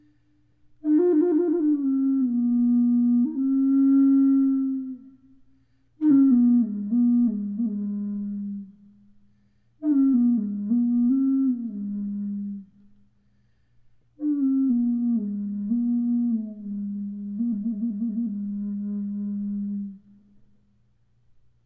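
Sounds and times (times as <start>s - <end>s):
large bore flute playing G sharp three: 0.8s - 5.3s, 6.0s - 8.9s, 9.8s - 12.8s, 14.2s - 20.2s.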